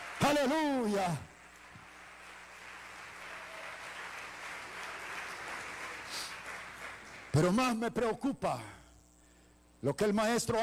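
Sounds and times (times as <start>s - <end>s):
audience applause: 0.0s - 7.3s
speech: 0.3s - 1.3s, 7.4s - 8.8s, 9.8s - 10.6s.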